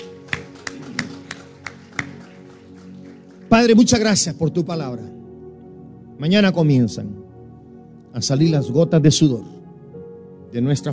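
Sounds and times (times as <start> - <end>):
audience applause: 0.0 - 3.7
speech: 3.5 - 5.2, 6.2 - 7.2, 8.2 - 9.6, 10.5 - 10.9.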